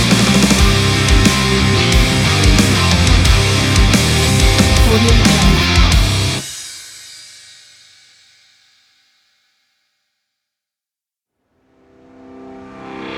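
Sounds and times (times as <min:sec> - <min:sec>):
heavy metal industry drum kit: 0:00.0 - 0:06.7.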